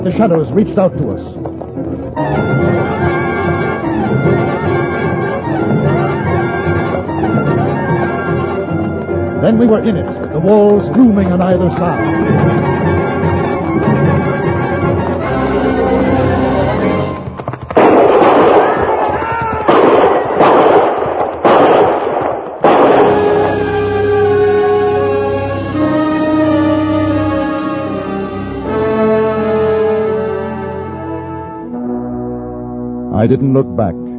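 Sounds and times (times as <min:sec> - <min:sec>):
speech: 0:00.0 - 0:01.5, 0:02.2 - 0:03.6, 0:09.4 - 0:12.7, 0:33.2 - 0:34.0
dramatic musical score: 0:00.0 - 0:34.1
volley of gunfire at the mouth of a canyon: 0:17.6 - 0:24.0.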